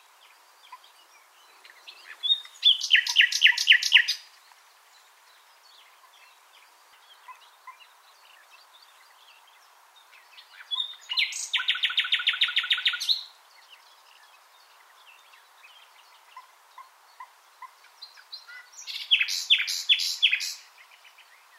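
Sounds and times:
common nightingale singing: 0.0 - 21.5.

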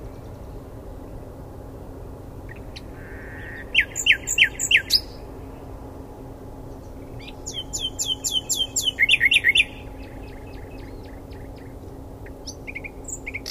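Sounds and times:
common nightingale Luscinia megarhynchos singing: 2.5 - 5.6, 6.6 - 13.4.

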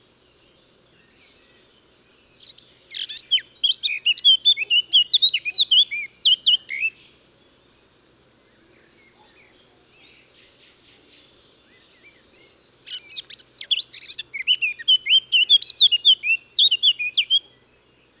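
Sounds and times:
Eurasian blackcap (Sylvia atricapilla) singing: 2.4 - 7.0, 12.8 - 17.5.

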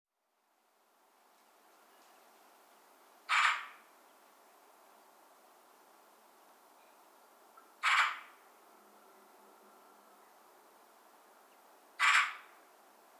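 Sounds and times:
Eurasian magpie Pica pica harsh rasping chack calls: 3.3 - 3.8, 7.8 - 8.4, 12.0 - 12.6.

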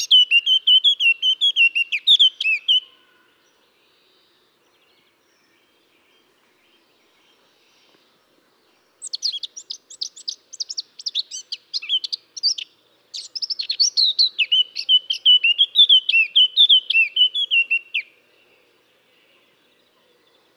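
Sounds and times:
Eurasian blackcap fluty song: 0.0 - 2.9, 9.0 - 18.1.

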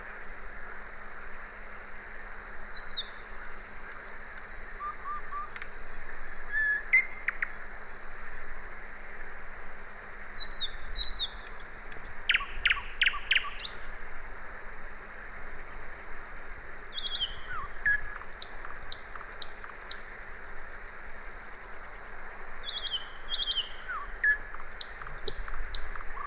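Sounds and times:
common nightingale song Luscinia megarhynchos: 2.3 - 7.6, 10.0 - 14.1, 15.0 - 20.3, 21.0 - 26.2.

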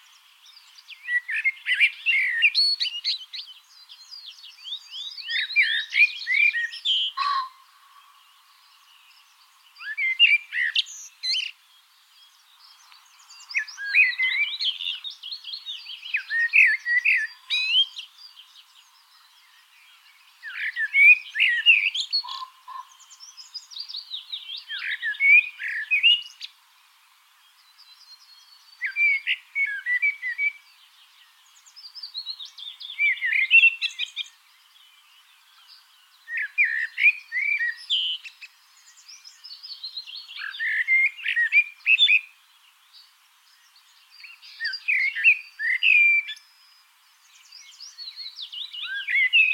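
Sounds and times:
common blackbird warbling song: 0.0 - 49.5.

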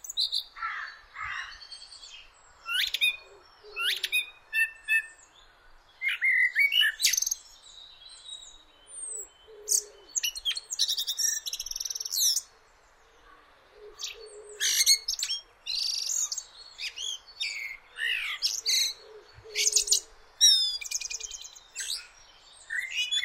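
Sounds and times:
common blackbird singing: 0.0 - 23.2
low cooing: 18.7 - 20.1.

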